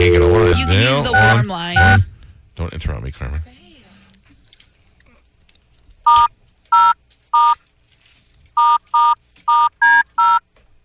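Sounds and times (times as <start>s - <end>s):
touch-tone telephone dialing beeps: 0.0s - 2.0s, 6.1s - 7.6s, 8.6s - 10.4s
speech: 0.0s - 3.6s.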